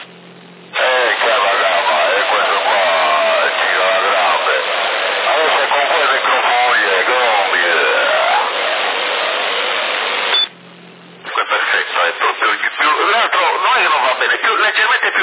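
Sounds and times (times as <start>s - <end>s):
radio-filtered voice with echo effect on a CB radio transmission in Sassari: 0.7s - 9.4s, 11.2s - 15.2s.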